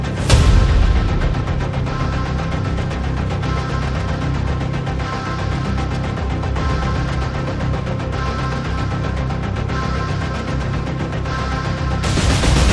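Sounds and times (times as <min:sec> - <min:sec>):
percussion pulses: 0:00.0 - 0:12.7.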